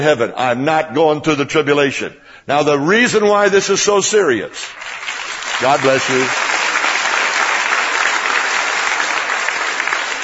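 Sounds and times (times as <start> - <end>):
speech: 0.0 - 5.0, 5.6 - 6.5
sustained applause from a large audience: 4.6 - 10.2.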